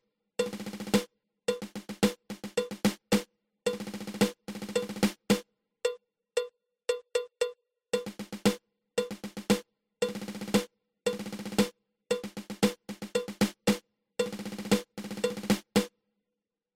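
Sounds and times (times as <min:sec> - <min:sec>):
nine stroke drum roll: 0:00.4 - 0:05.4, 0:08.0 - 0:15.9.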